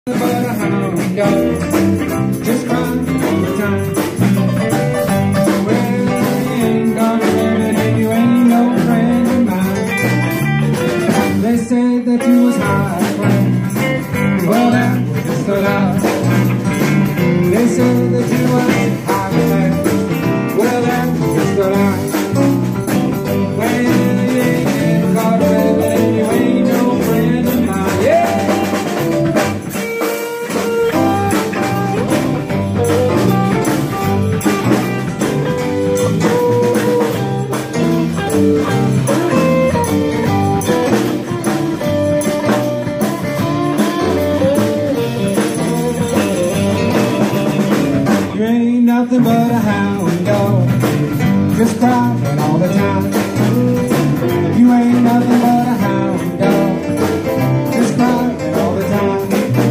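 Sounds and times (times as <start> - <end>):
cover band playing: 0.0 - 59.7.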